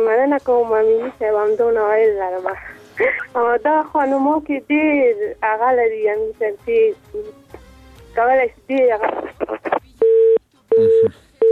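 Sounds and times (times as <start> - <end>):
speech: 0.0 - 7.5, 8.2 - 9.8, 10.8 - 11.3
telephone busy tone after a dropped phone call: 10.0 - 11.4.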